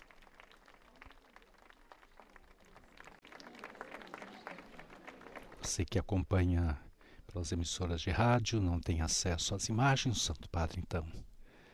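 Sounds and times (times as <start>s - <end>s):
crowd applauding the arrival of the Santo Padre: 0.0s - 5.8s
speech: 5.6s - 6.8s, 7.4s - 11.3s.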